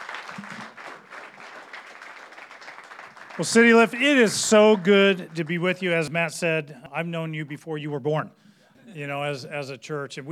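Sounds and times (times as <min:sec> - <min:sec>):
church congregation applauding a guest pastor: 0:00.0 - 0:06.1
speech: 0:03.4 - 0:10.3.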